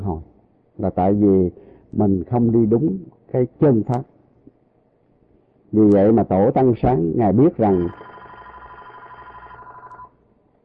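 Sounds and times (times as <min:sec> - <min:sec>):
speech: 0:00.1 - 0:04.1, 0:05.7 - 0:08.1
telephone ringing with an incoming call: 0:07.6 - 0:10.2.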